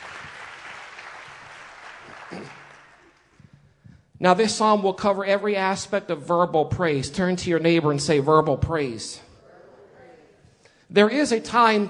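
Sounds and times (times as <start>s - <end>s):
audience clapping hands: 0.0s - 3.6s
speech: 2.3s - 2.6s, 4.2s - 9.3s, 10.9s - 11.8s.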